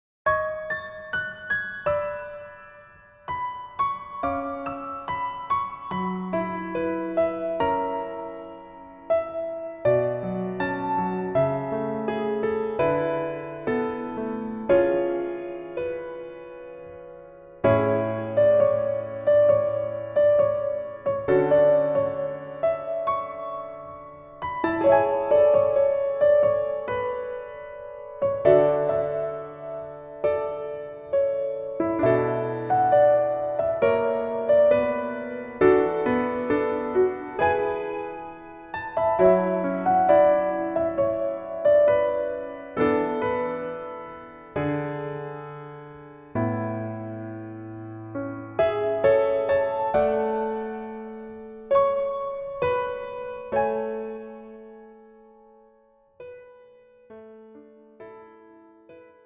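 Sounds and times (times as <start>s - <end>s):
piano backing track: 0.2s - 59.2s.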